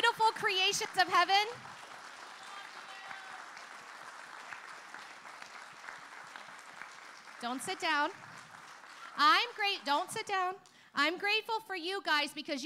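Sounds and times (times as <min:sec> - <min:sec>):
audience applause: 0:00.5 - 0:10.2
speech: 0:00.7 - 0:01.7, 0:07.4 - 0:08.3, 0:09.2 - 0:12.6.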